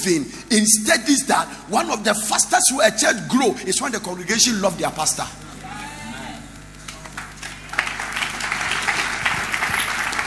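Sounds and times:
speech: 0:00.0 - 0:05.5
audience applause: 0:05.5 - 0:10.2.

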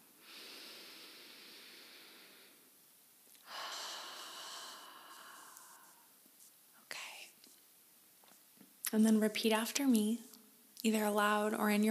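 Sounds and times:
big slow deep breath during a guided relaxation exercise: 0:00.2 - 0:02.7, 0:03.4 - 0:06.2
speech: 0:08.9 - 0:11.8.

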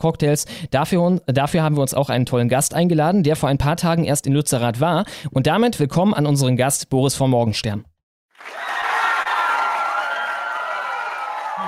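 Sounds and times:
speech: 0:00.0 - 0:08.6
crowd applause: 0:08.3 - 0:11.6.

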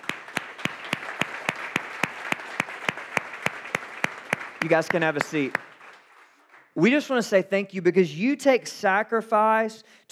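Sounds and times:
audience clapping: 0:00.0 - 0:07.1
speech: 0:04.6 - 0:05.6, 0:06.8 - 0:10.1.

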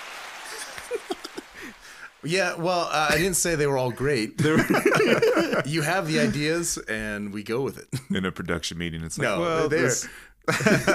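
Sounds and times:
applause sound effect: 0:00.0 - 0:02.2
laughter: 0:00.5 - 0:01.8, 0:04.2 - 0:06.4, 0:10.5 - 0:10.9
speech: 0:00.5 - 0:10.9.

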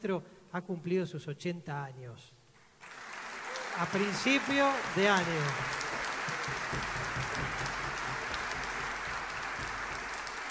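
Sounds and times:
speech: 0:00.0 - 0:02.4, 0:03.8 - 0:07.8
concert audience applauding: 0:02.8 - 0:10.4.

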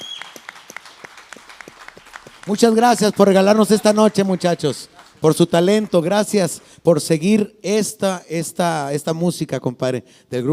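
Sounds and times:
studio applause: 0:00.0 - 0:06.8
speech: 0:02.5 - 0:10.5.

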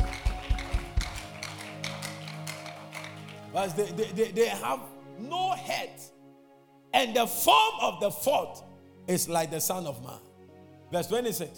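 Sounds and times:
audience clapping hands: 0:00.0 - 0:04.0
speech: 0:03.6 - 0:06.0, 0:07.0 - 0:10.3, 0:10.9 - 0:11.5.

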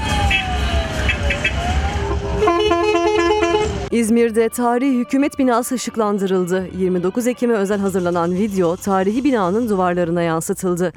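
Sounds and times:
traffic rumble: 0:00.0 - 0:10.9
classic car horns honking: 0:00.2 - 0:03.9
speech: 0:03.9 - 0:10.9.

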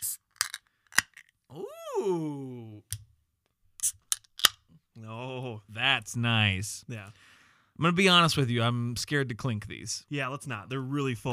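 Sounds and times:
crowler beer can cracking open: 0:00.3 - 0:01.3
speech: 0:06.0 - 0:11.3.

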